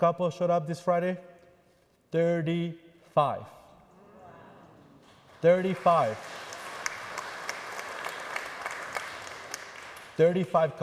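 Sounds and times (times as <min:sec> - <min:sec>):
speech: 0:00.0 - 0:01.3, 0:02.1 - 0:03.6, 0:05.4 - 0:06.4, 0:10.2 - 0:10.8
audience clapping: 0:04.8 - 0:10.6.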